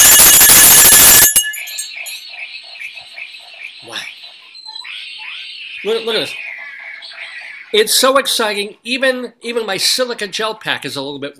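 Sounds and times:
bell ringing: 0.0 - 2.3
speech: 5.8 - 6.4, 7.7 - 11.3.

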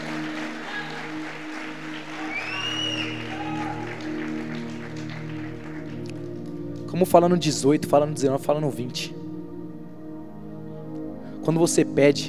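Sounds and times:
audience applause: 0.0 - 6.6
speech: 6.9 - 9.2, 11.4 - 12.2.

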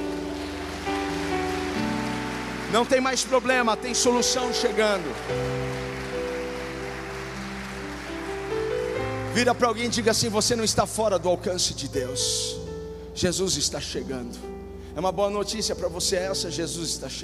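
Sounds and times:
audience applauding: 0.0 - 10.4
speech: 2.7 - 5.9, 9.4 - 12.6, 13.2 - 17.2.

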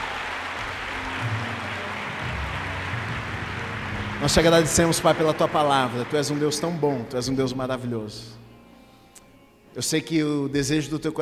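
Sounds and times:
audience applause: 0.0 - 7.6
speech: 4.2 - 8.4, 9.8 - 11.1.

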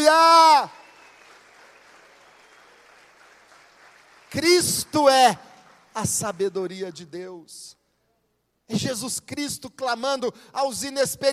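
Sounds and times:
audience applause: 0.8 - 6.5
speech: 4.3 - 7.8, 8.7 - 11.3.

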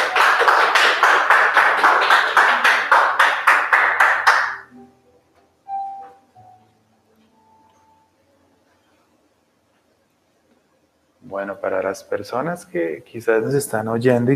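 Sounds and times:
audience applauding: 0.0 - 4.7
soft tones: 4.7 - 13.9
speech: 11.6 - 14.3.

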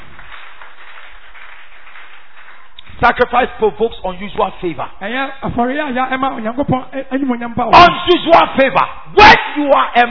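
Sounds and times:
hands clapping: 0.0 - 3.5
speech: 3.0 - 10.0.

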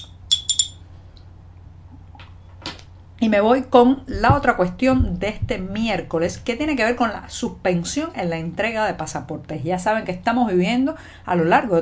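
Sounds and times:
spoon stirring in a cup: 0.0 - 0.8
low steady hum: 0.0 - 11.8
speech: 3.2 - 11.8.

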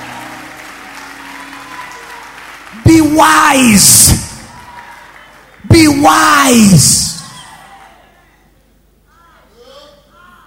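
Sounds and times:
audience applause: 0.0 - 7.8
speech: 2.7 - 4.2, 6.0 - 7.1.

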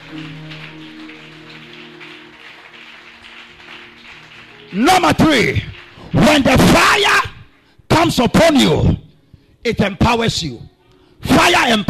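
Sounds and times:
audience clapping hands: 0.0 - 6.8
speech: 4.7 - 7.3, 8.0 - 9.0, 9.6 - 10.7, 11.3 - 11.8.

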